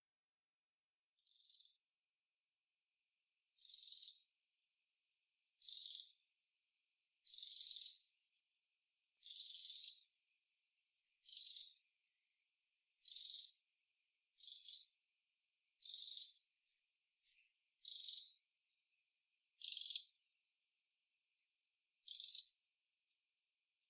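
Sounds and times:
Eurasian wren rattle calls: 0:01.2 - 0:01.8, 0:03.6 - 0:04.2, 0:05.6 - 0:06.2, 0:07.2 - 0:08.1, 0:09.2 - 0:10.2, 0:10.8 - 0:18.4, 0:19.6 - 0:20.2, 0:22.0 - 0:22.6.

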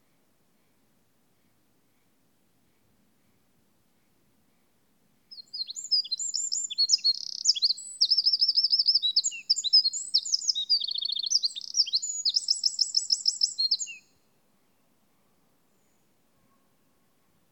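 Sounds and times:
Eurasian wren song: 0:05.3 - 0:16.6.

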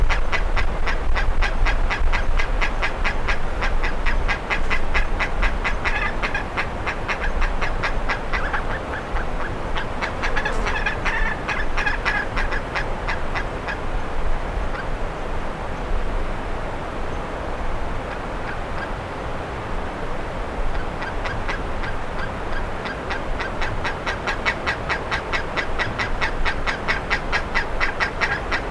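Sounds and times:
low constant rumble: 0:00.0 - 0:23.3
bird raspy calls: 0:00.1 - 0:13.8, 0:20.7 - 0:28.6.

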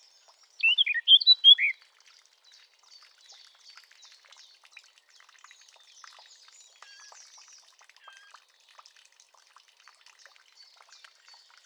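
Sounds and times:
Eurasian blackcap warbling: 0:00.6 - 0:01.7.

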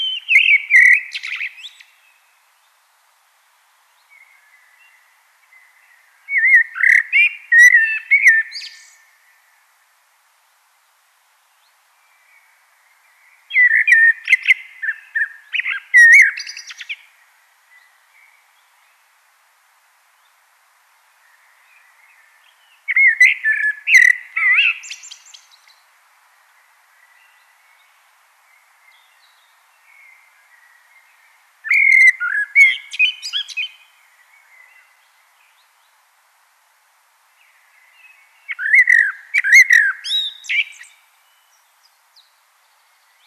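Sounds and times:
common blackbird singing: 0:00.0 - 0:02.0, 0:04.1 - 0:09.0, 0:13.2 - 0:17.1, 0:21.4 - 0:25.8, 0:28.9 - 0:35.6, 0:37.5 - 0:42.4.

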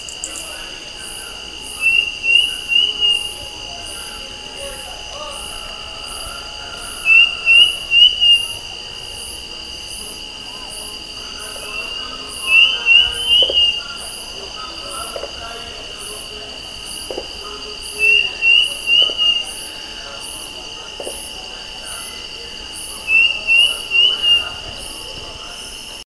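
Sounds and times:
shrill insect drone: 0:00.0 - 0:26.0
bird rising whistled calls: 0:01.6 - 0:08.7, 0:11.6 - 0:14.2, 0:17.9 - 0:19.7, 0:23.0 - 0:24.7.

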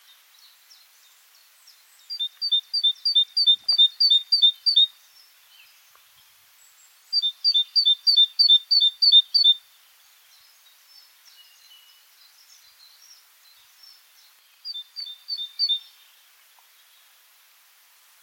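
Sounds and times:
faint other birds: 0:00.0 - 0:18.2
great tit calls: 0:02.1 - 0:04.9, 0:07.1 - 0:09.6.

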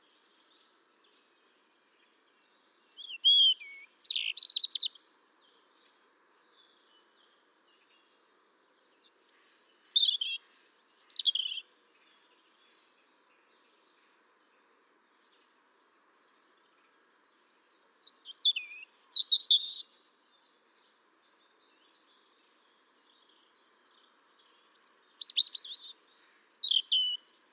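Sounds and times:
European robin song: 0:01.8 - 0:05.0, 0:08.4 - 0:12.9, 0:13.9 - 0:27.5.

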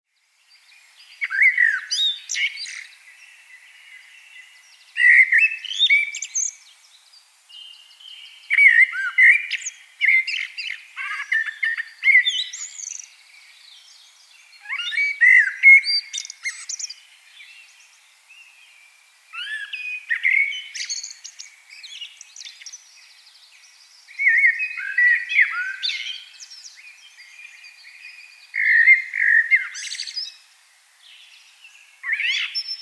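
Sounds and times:
common blackbird singing whistles and twitters: 0:01.1 - 0:02.9, 0:05.0 - 0:06.6, 0:08.5 - 0:13.1, 0:14.6 - 0:17.0, 0:19.3 - 0:22.8, 0:24.1 - 0:30.4, 0:32.0 - 0:32.8.

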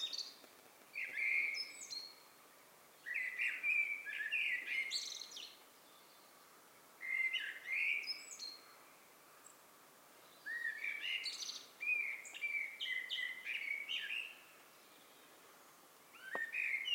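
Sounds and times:
Eurasian blackbird singing: 0:00.0 - 0:02.2, 0:03.0 - 0:06.3, 0:07.0 - 0:08.8, 0:10.2 - 0:15.4, 0:16.1 - 0:16.9.

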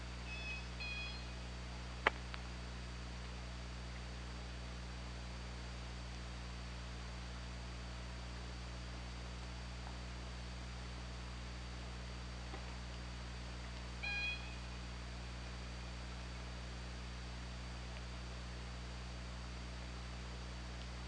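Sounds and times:
low hum and hiss: 0:00.0 - 0:21.0
killer whale call: 0:00.3 - 0:01.4, 0:14.0 - 0:14.8.

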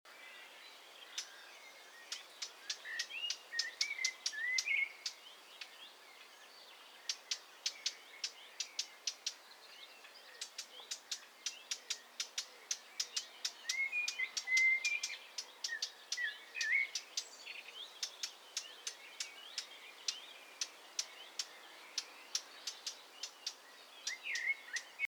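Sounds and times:
hiss: 0:00.1 - 0:25.0
Eurasian blackcap ticking calls: 0:02.0 - 0:05.7, 0:07.1 - 0:09.4, 0:10.3 - 0:25.0.

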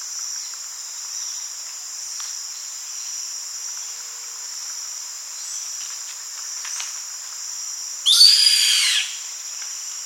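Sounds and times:
high-pitched background hiss: 0:00.0 - 0:10.0
upward sweeping bird whistle: 0:08.1 - 0:09.2.

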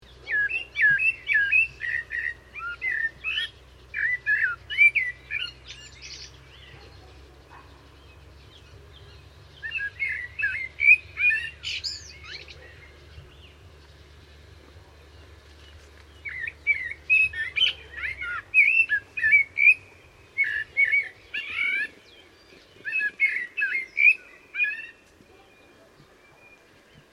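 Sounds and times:
common blackbird song: 0:00.0 - 0:27.1
low hum: 0:01.5 - 0:21.4.

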